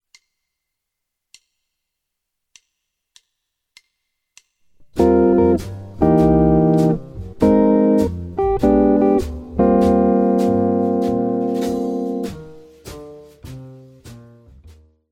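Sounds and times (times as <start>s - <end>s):
guitar lick: 4.8s - 12.6s.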